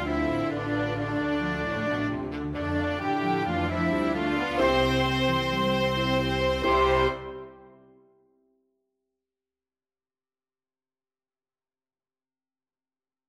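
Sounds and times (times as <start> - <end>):
dreamy orchestra: 0.0 - 7.9.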